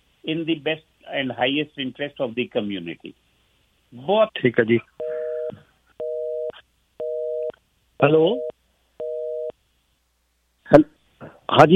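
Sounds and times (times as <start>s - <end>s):
speech: 0.2s - 3.2s, 3.9s - 5.0s, 8.0s - 8.6s, 10.7s - 10.9s, 11.5s - 11.7s
telephone line tone after a call disconnects: 5.0s - 7.5s, 8.4s - 9.5s.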